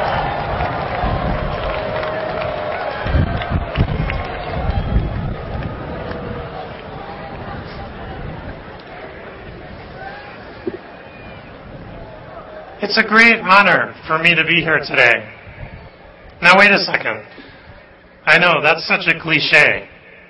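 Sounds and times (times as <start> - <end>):
graduation crowd cheering and applauding: 0.0 - 12.8
speech: 12.9 - 15.4, 16.4 - 17.5, 18.3 - 19.9.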